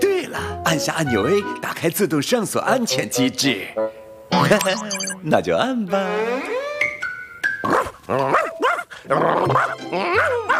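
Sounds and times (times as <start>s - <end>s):
speech: 0.7s - 6.6s, 7.6s - 8.4s, 9.1s - 10.5s
dog barking: 7.7s - 8.9s, 9.6s - 10.5s.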